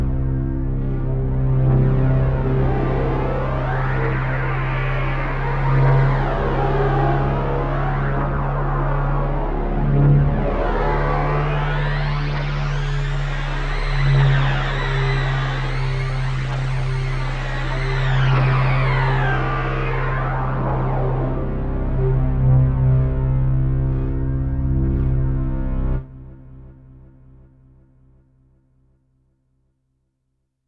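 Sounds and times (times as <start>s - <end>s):
modal synth drone with dotted eighth delay: 0.0s - 26.5s.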